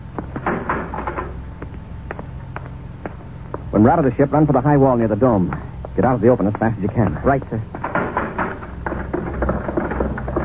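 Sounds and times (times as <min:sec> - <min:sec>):
speech: 0:03.8 - 0:07.7
spaceship inner hatch opening: 0:07.8 - 0:10.4.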